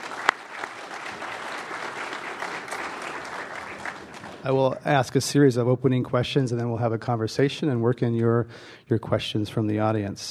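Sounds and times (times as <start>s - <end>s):
audience applause welcoming an expert panel: 0.0s - 5.0s
speech: 4.4s - 10.2s.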